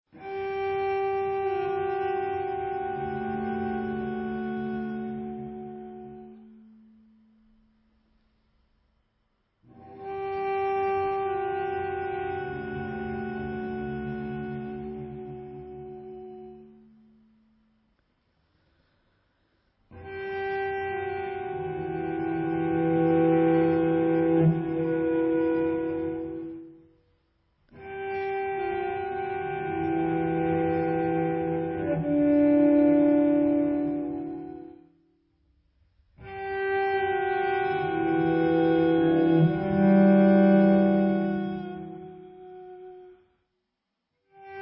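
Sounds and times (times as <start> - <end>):
cello music: 0.2 - 6.7, 9.8 - 17.0, 20.0 - 26.8, 27.8 - 35.0, 36.3 - 43.1.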